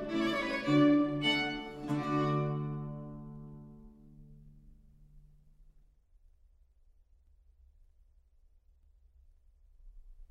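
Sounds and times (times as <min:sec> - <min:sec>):
music: 0:00.0 - 0:06.0.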